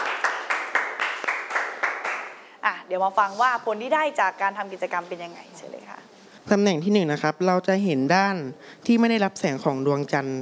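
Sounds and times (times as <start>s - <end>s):
classroom applause for a student: 0.0s - 2.4s
speech: 2.6s - 10.4s.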